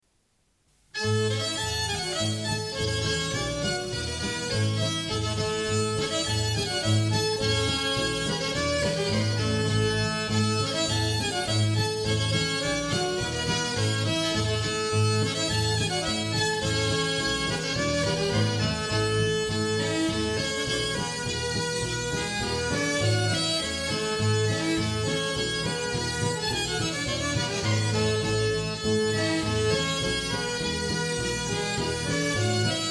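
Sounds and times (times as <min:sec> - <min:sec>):
galop dance music: 0:00.8 - 0:32.9.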